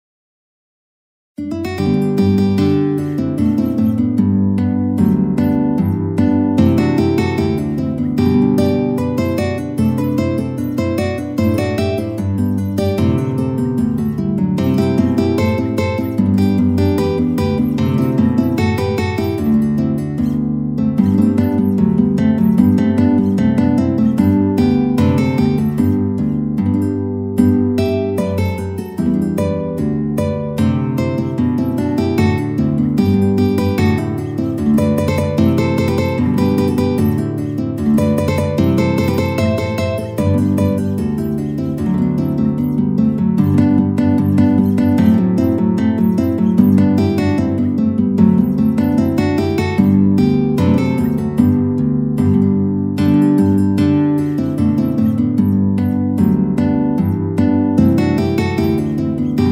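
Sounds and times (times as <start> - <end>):
guitar quartet concerto: 1.4 - 59.5.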